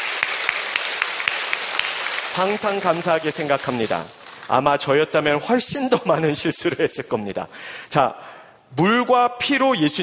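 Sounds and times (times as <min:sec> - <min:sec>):
church congregation applauding in rhythmic clapping: 0:00.0 - 0:04.5
speech: 0:02.4 - 0:10.0.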